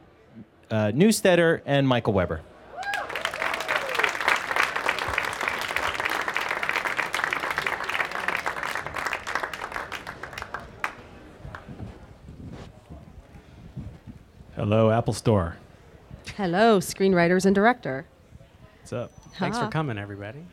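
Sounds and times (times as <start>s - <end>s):
speech: 0.4s - 2.5s, 14.7s - 15.6s, 16.4s - 18.1s, 18.9s - 20.5s
audience applause at an Apple Store event: 2.8s - 11.7s.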